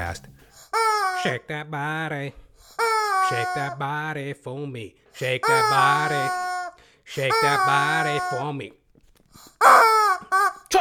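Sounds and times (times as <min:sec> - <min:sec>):
speech: 0:00.1 - 0:00.4, 0:01.2 - 0:06.4, 0:07.1 - 0:08.8
chicken squawking: 0:00.6 - 0:01.5, 0:02.6 - 0:03.8, 0:05.3 - 0:08.6, 0:09.4 - 0:10.7.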